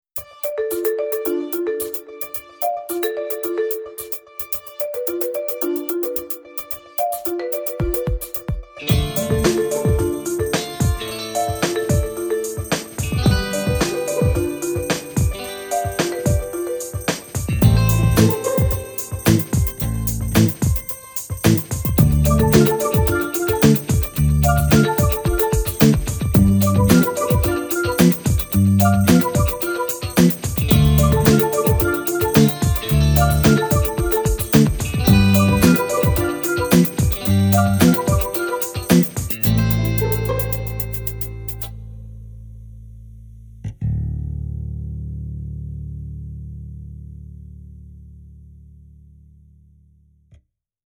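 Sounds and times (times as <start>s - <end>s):
funky bounces: 0.2s - 41.7s.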